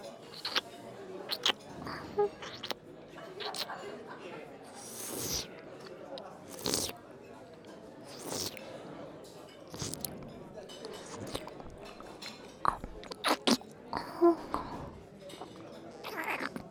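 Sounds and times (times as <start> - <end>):
sticky wet mouth sounds in left ear in family restaurant: 0.3 - 0.6, 1.3 - 2.8, 3.4 - 3.7, 4.7 - 5.6, 6.5 - 7.0, 8.1 - 8.6, 9.7 - 10.2, 10.8 - 16.6.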